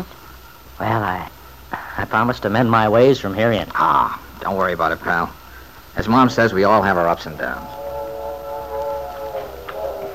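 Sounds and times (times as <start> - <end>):
speech: 0.8 - 1.4, 2.0 - 5.4, 6.0 - 7.8
train whistle: 6.8 - 10.1.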